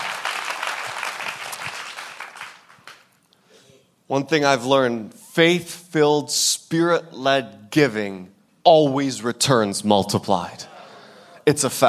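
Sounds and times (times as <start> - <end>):
church audience clapping: 0.0 - 3.2
speech: 4.1 - 10.7, 11.4 - 11.8.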